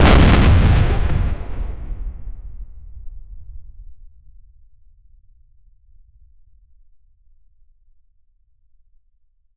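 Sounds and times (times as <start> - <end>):
battlefield artillery: 0.0 - 4.0.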